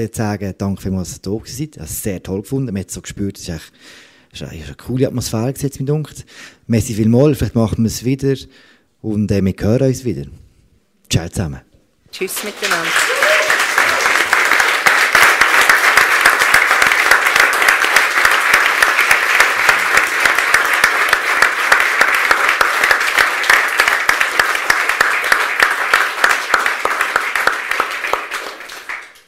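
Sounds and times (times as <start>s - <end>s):
speech: 0.0s - 10.4s, 11.1s - 13.0s
huge audience applause: 12.2s - 29.2s.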